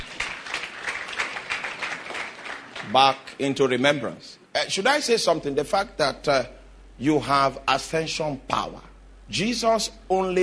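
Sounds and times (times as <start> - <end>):
audience clapping: 0.0 - 3.4
speech: 2.9 - 10.4.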